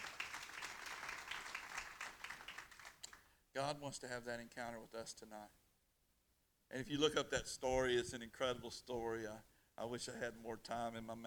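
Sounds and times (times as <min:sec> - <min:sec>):
audience applause: 0:00.0 - 0:03.2
speech: 0:03.6 - 0:05.6, 0:06.7 - 0:11.2.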